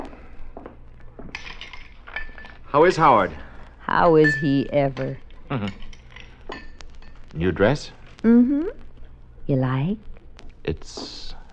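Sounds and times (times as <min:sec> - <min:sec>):
glasses clinking while mixing a drink: 0:01.3 - 0:03.1, 0:04.0 - 0:06.8
speech: 0:02.7 - 0:05.8, 0:07.3 - 0:08.8, 0:09.5 - 0:11.4.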